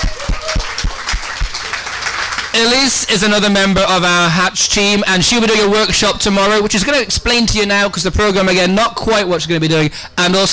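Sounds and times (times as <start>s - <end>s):
audience applause: 0.0s - 2.8s
speech: 2.6s - 10.5s.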